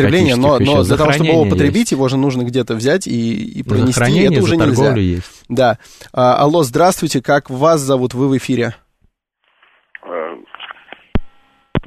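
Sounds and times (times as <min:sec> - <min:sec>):
thin band-limited telephone voice of a radio call-in caller: 0:00.0 - 0:01.8, 0:03.7 - 0:05.2
speech: 0:00.0 - 0:08.8.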